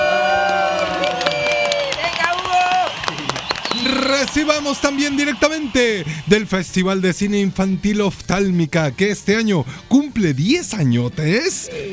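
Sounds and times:
whoops: 0:00.0 - 0:06.0
crowd clapping and cheering: 0:00.0 - 0:08.4
speech: 0:04.2 - 0:11.9.

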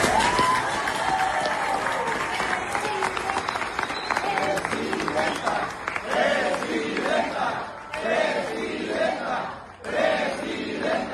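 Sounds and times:
crowd cheering and shouting: 0:00.0 - 0:05.6
crowd applause: 0:00.0 - 0:11.0.

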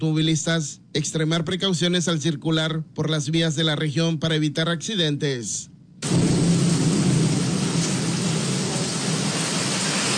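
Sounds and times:
speech: 0:00.0 - 0:06.3
heavy rain: 0:06.0 - 0:10.1
strong rumbling wind: 0:06.0 - 0:10.1.

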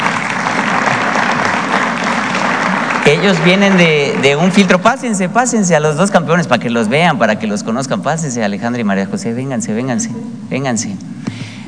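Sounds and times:
audience applause: 0:00.0 - 0:05.1
speech: 0:03.2 - 0:11.2.

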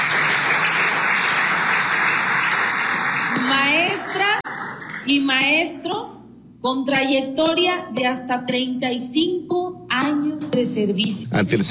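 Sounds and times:
applause: 0:00.0 - 0:05.1
speech: 0:05.0 - 0:11.6.

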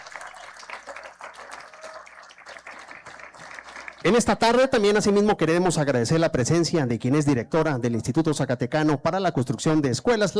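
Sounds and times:
audience applause: 0:00.0 - 0:04.6
speech: 0:04.0 - 0:10.3.

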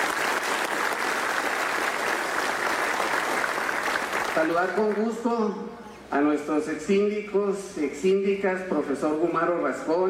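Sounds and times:
audience applause: 0:00.0 - 0:05.1
speech: 0:04.4 - 0:10.0.

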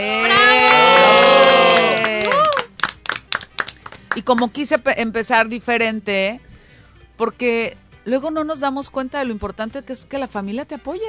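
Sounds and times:
audience cheering: 0:00.0 - 0:02.8
scattered clapping: 0:00.1 - 0:04.6
speech: 0:04.2 - 0:06.5, 0:07.2 - 0:11.0.

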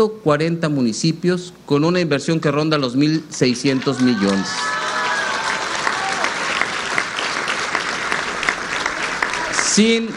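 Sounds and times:
speech: 0:00.0 - 0:04.8, 0:09.8 - 0:10.1
audience applause: 0:03.4 - 0:10.1.

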